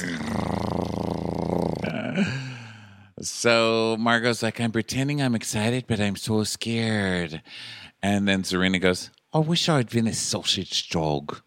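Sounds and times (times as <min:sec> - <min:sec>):
voice imitating a cat purring: 0:00.0 - 0:02.3
speech: 0:02.2 - 0:02.4, 0:03.3 - 0:11.4.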